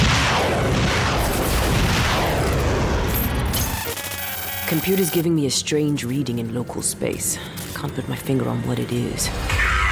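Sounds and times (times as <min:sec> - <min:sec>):
science-fiction weapons opening fire in an audio drama: 0:00.0 - 0:04.2
speech: 0:04.7 - 0:09.8.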